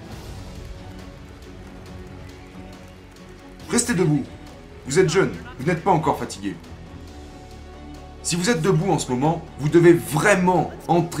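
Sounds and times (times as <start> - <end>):
audience applause: 0.0 - 11.1
speech: 3.8 - 6.7, 8.3 - 11.1.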